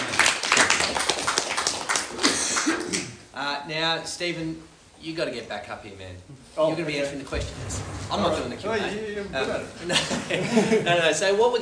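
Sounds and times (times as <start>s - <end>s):
audience applause: 0.0s - 2.9s
speech: 3.6s - 11.6s
laughter: 9.4s - 11.2s.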